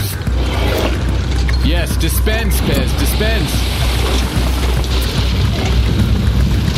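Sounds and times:
thunder of a big storm: 0:00.2 - 0:06.7.

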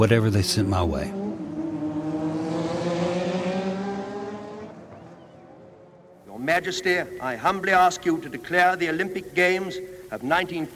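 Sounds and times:
speech: 0:00.0 - 0:01.2, 0:06.6 - 0:10.7
race cars speeding past: 0:00.2 - 0:06.2.

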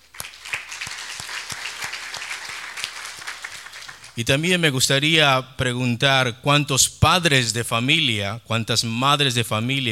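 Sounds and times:
audience clapping: 0:00.0 - 0:04.3
speech: 0:04.2 - 0:09.9.

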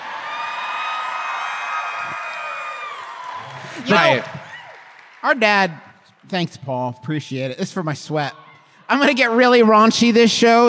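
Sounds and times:
crowd whooping and shouting: 0:00.0 - 0:05.2
crowd clapping: 0:00.0 - 0:07.4
speech: 0:03.9 - 0:04.4, 0:05.2 - 0:10.6.

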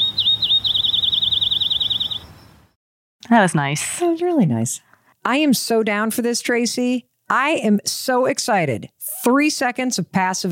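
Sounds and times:
bird trilling: 0:00.0 - 0:02.6
speech: 0:03.3 - 0:10.5.

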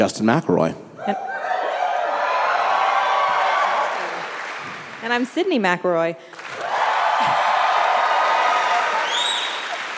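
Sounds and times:
speech: 0:00.0 - 0:01.3, 0:05.0 - 0:06.4
audience cheering: 0:01.1 - 0:05.0, 0:06.4 - 0:09.9
audience applause: 0:01.8 - 0:05.4, 0:06.3 - 0:09.9.

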